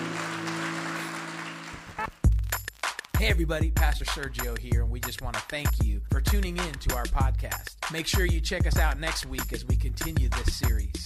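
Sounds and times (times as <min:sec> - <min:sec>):
audience applause: 0:00.0 - 0:02.2
organ chords: 0:00.0 - 0:02.2
speech: 0:03.2 - 0:11.0.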